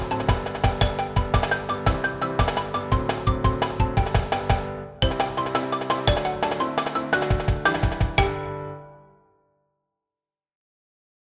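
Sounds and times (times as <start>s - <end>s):
percussion: 0.0s - 8.6s
xylophone: 0.0s - 9.0s
piano: 0.0s - 9.5s.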